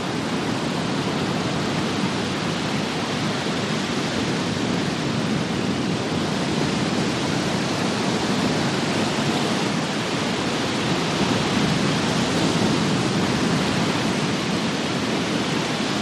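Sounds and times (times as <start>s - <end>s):
heavy rumbling surf and waves: 0.0s - 15.9s.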